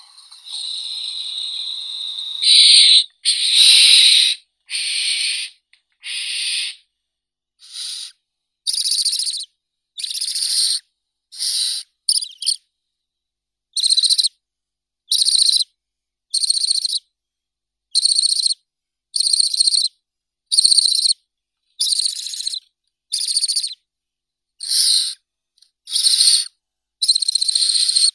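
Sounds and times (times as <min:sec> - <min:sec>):
barn owl Tyto alba chicks calling: 0:00.0 - 0:06.8, 0:07.6 - 0:08.1, 0:08.7 - 0:10.8, 0:11.4 - 0:12.6, 0:13.8 - 0:14.3, 0:15.1 - 0:15.6, 0:16.4 - 0:17.0, 0:18.0 - 0:18.6, 0:19.2 - 0:19.9, 0:20.5 - 0:21.2, 0:21.8 - 0:23.8, 0:24.6 - 0:25.2, 0:25.9 - 0:28.1.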